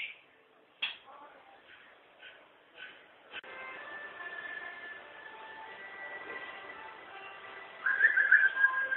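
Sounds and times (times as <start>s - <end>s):
white-rumped shama song: 3.5s - 8.9s.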